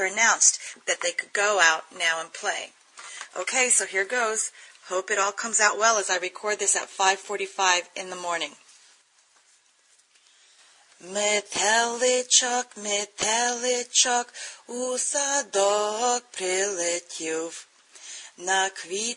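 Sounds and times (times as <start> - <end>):
person speaking: 0.0 - 8.6
person singing a Ukrainian lullaby: 11.0 - 17.7, 18.3 - 19.1.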